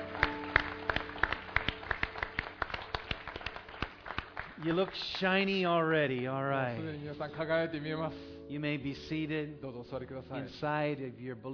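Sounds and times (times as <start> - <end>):
audience applause: 0.0 - 6.2
speech: 4.6 - 11.5.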